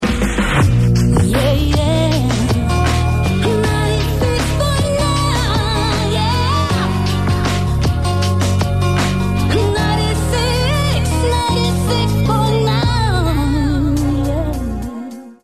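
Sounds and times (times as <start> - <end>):
guitar: 0.7 - 15.4.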